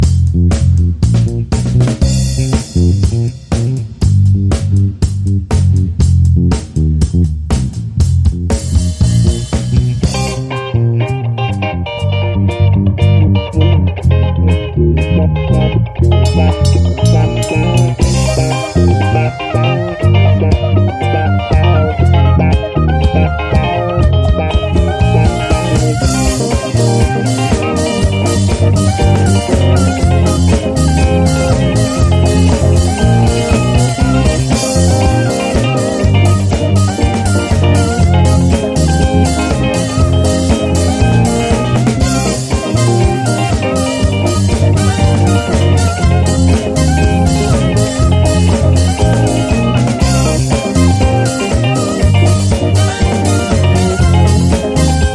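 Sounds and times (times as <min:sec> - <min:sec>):
instrumental disco music: 0:00.0 - 0:55.1.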